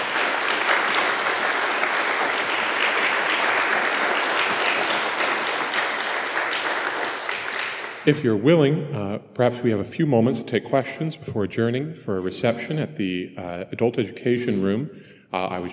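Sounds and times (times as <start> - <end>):
audience applause: 0.0 - 8.1
speech: 8.0 - 15.7.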